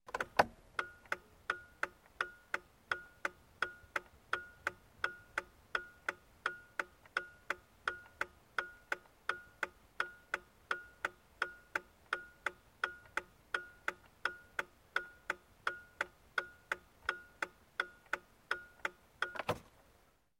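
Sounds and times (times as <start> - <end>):
car turn signal clicking: 0.1 - 19.5.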